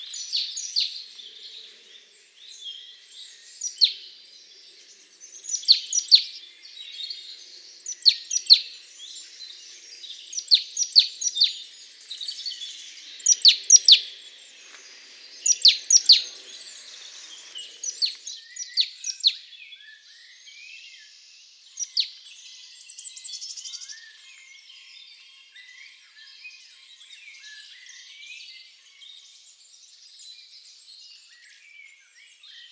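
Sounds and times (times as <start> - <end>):
great tit calls: 0.0 - 19.3
soft bird chatter: 0.0 - 19.3.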